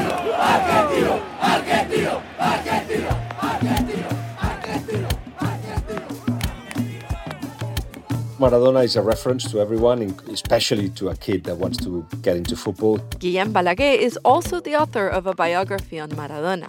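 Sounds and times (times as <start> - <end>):
big stadium crowd cheering wildly: 0.0 - 9.3
speech: 8.4 - 16.6.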